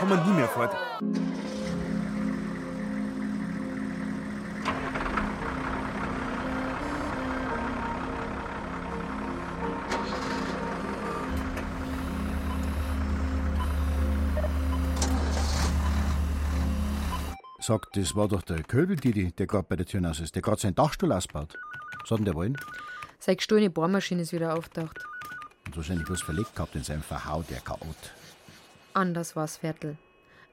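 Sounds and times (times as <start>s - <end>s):
speech: 0.1s - 1.3s, 17.7s - 25.1s, 25.7s - 28.2s, 29.0s - 30.1s
car engine idling: 1.2s - 17.3s.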